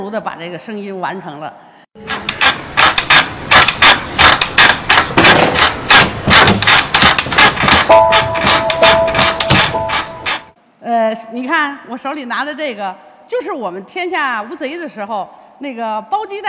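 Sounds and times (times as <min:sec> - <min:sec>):
speech: 0:00.0 - 0:01.7, 0:11.1 - 0:16.4
small bamboo chair creaking in a rocking rhythm: 0:02.0 - 0:10.6.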